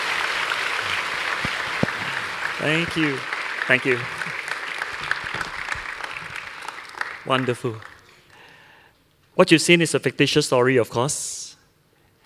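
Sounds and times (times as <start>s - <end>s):
audience applause for the production team: 0.0s - 8.3s
speech: 2.6s - 4.4s, 7.3s - 7.9s, 9.4s - 11.4s.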